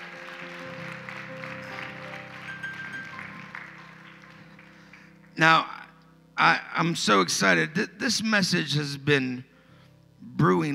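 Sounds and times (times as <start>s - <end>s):
hand clapping: 0.0s - 5.4s
speech: 5.4s - 5.7s, 6.4s - 9.5s, 10.4s - 10.7s.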